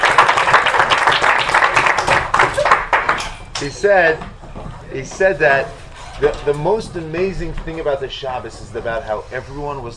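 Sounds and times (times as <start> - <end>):
group clapping: 0.0 - 3.7
speech: 3.6 - 4.3, 4.9 - 9.9.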